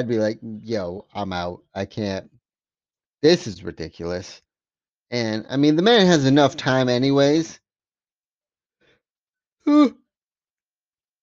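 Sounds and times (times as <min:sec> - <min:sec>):
speech: 0:00.0 - 0:02.4, 0:03.2 - 0:04.4, 0:05.1 - 0:07.6, 0:09.6 - 0:10.0
person yawning: 0:09.6 - 0:10.0.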